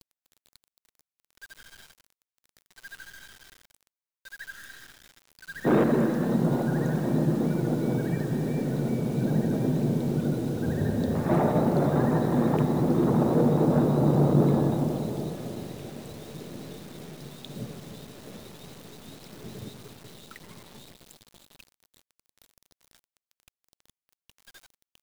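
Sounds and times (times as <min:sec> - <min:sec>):
thunder: 0:05.6 - 0:20.9.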